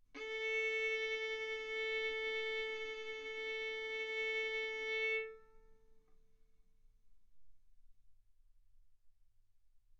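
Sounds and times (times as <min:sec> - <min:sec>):
violin bowed mezzo-forte on the A string, A4 and B4: 0:00.2 - 0:05.8.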